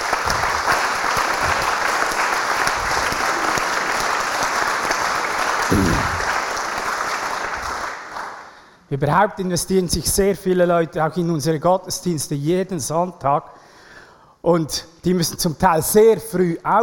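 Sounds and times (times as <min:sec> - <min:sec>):
audience applause: 0:00.0 - 0:08.5
speech: 0:08.9 - 0:13.6, 0:14.4 - 0:16.8.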